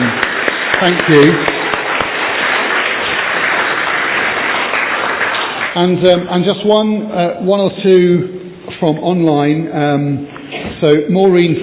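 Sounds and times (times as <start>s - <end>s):
audience applause: 0.0s - 6.0s
speech: 0.8s - 1.6s, 5.8s - 11.6s.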